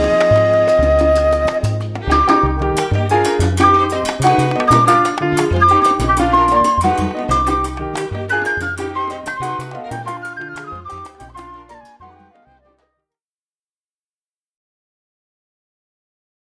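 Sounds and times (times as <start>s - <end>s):
traditional Cuban music: 0.0s - 12.5s.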